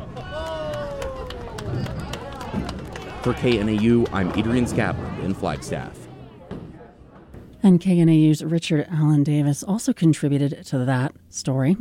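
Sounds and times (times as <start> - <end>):
person cheering: 0.0 - 3.5
family applauding at a bowling alley: 0.0 - 4.9
hubbub of voices at a bowling alley: 0.0 - 7.6
speech: 3.2 - 6.0, 7.6 - 11.8.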